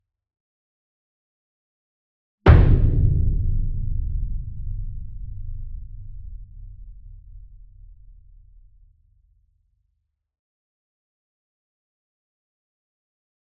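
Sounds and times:
40-inch concert bass drum hit with a soft beater: 0:02.5 - 0:08.6.

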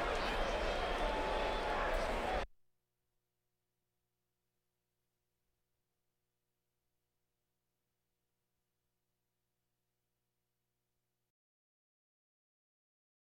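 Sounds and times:
crowds: 0:00.0 - 0:02.4.

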